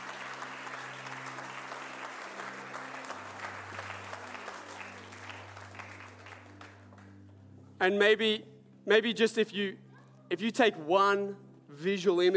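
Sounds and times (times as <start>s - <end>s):
round of applause: 0.0s - 7.2s
speech: 7.8s - 12.3s.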